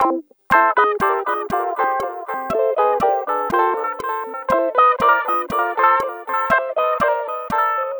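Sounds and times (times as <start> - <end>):
guitars playing: 0.0 - 7.9.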